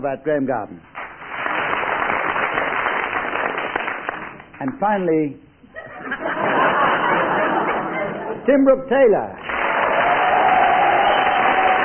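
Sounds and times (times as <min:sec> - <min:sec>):
speech: 0:00.0 - 0:00.9, 0:04.6 - 0:05.4, 0:08.5 - 0:09.4
studio audience applause: 0:01.0 - 0:04.6, 0:09.4 - 0:11.8
laughter: 0:05.7 - 0:08.4.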